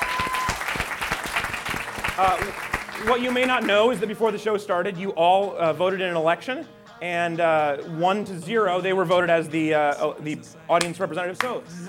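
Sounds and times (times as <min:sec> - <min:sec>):
live show audience applause: 0:00.0 - 0:03.9
speech: 0:02.2 - 0:11.8.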